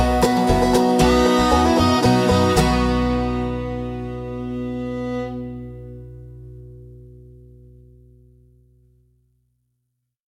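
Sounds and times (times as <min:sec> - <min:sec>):
piano: 0:00.0 - 0:06.3
banjo: 0:00.0 - 0:06.8
bluegrass music: 0:00.0 - 0:07.3.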